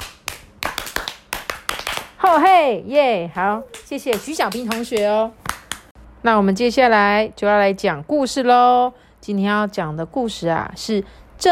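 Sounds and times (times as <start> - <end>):
rhythmic encouraging hand clapping: 0.0 - 2.2, 3.7 - 6.0
speech: 2.3 - 5.4, 6.2 - 11.5.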